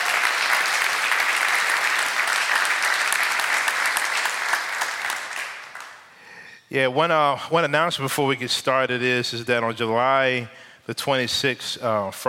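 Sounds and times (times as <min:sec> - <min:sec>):
audience applause: 0:00.0 - 0:06.1
speech: 0:06.7 - 0:12.2.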